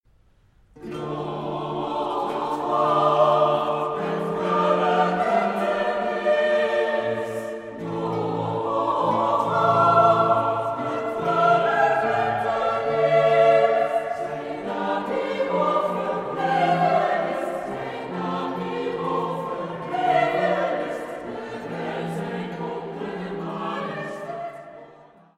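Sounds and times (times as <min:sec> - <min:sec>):
choir singing a motet: 0:00.8 - 0:25.3.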